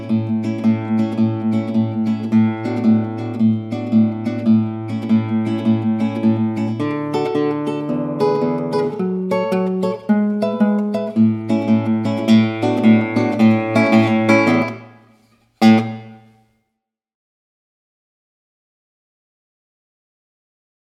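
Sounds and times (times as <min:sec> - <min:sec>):
instrumental music: 0:00.0 - 0:16.4.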